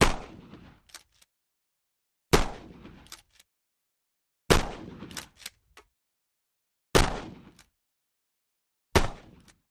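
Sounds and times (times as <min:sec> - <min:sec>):
12 gauge pump-action shotgun: 0:00.0 - 0:01.3, 0:02.3 - 0:03.5, 0:04.5 - 0:05.8, 0:07.0 - 0:07.7, 0:09.0 - 0:09.6.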